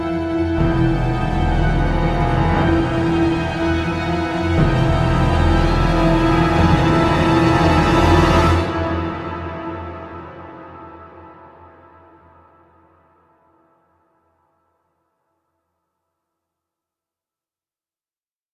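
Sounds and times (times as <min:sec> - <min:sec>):
outburst ambient sound: 0:00.0 - 0:11.8.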